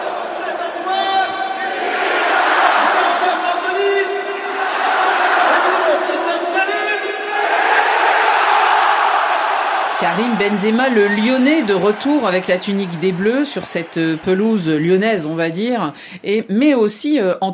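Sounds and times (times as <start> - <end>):
football stadium crowd in Lyon cheering and chanting for the French national team: 0.0 - 16.0
speech: 10.1 - 17.5.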